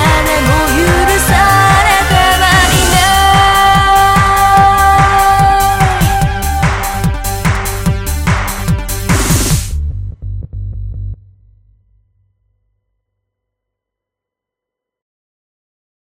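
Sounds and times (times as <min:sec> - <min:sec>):
royalty-free horror escape anime music: 0:00.0 - 0:11.7.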